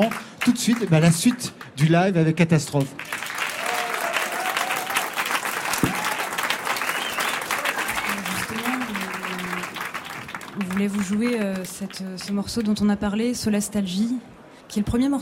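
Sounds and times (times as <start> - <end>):
speech: 0.0 - 3.2, 10.8 - 15.2
live audience applause: 2.9 - 12.7
whistles: 5.7 - 8.4
faint crowd voices: 7.0 - 12.2.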